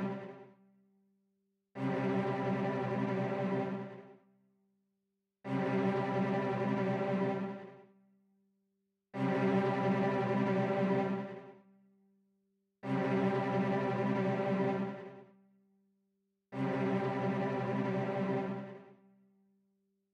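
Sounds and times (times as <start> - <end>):
orchestra cello: 0.0 - 0.5, 1.8 - 4.2, 5.5 - 8.0, 9.2 - 11.7, 12.8 - 15.3, 16.6 - 19.1.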